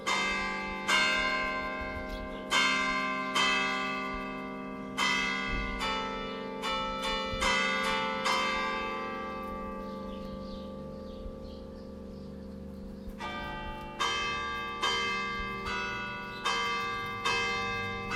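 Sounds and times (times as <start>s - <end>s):
church bells ringing: 0.0s - 18.1s.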